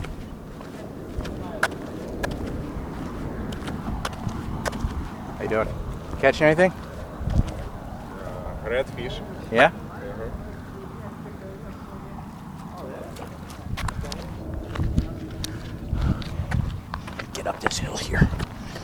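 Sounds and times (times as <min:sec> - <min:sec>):
footsteps of a man walking outdoors on rocky ground near a fishing spot: 0:00.0 - 0:08.2, 0:13.5 - 0:18.8
steady noise: 0:00.0 - 0:18.8
speech: 0:05.5 - 0:06.8, 0:08.7 - 0:10.4.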